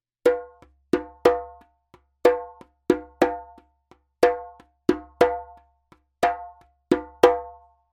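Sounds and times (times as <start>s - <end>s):
djembe drumming: 0.3s - 7.7s.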